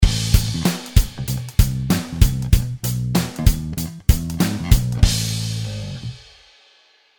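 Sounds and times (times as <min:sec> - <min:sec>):
sixteenth-note offset kick drum: 0:00.0 - 0:02.8, 0:03.4 - 0:05.2.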